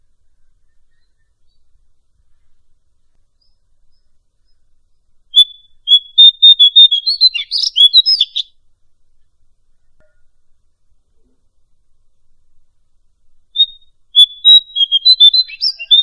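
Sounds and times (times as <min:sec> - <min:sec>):
bird song: 0:00.0 - 0:08.6, 0:13.5 - 0:16.0.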